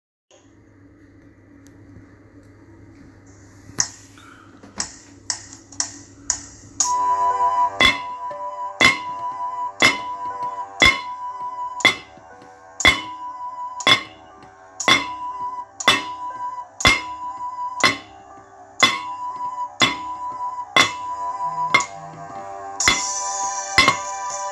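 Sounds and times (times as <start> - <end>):
percussion: 5.9 - 24.5.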